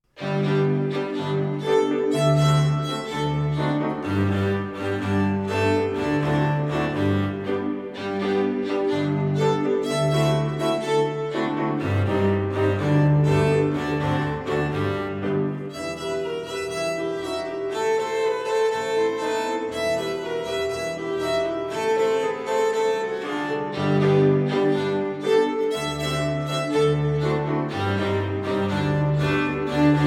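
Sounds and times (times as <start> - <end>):
tango music: 0.1 - 30.0.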